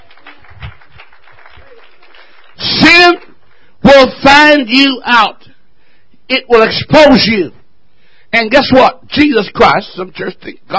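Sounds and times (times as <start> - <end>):
people clapping: 0.0 - 3.6
speech: 4.0 - 5.5, 6.3 - 7.6, 8.3 - 10.7.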